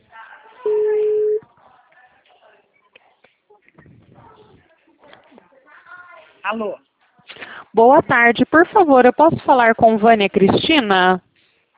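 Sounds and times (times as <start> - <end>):
voices: 0.0 - 6.4
outgoing telephone call tone: 0.7 - 1.4
speech: 6.5 - 6.9, 7.7 - 11.2.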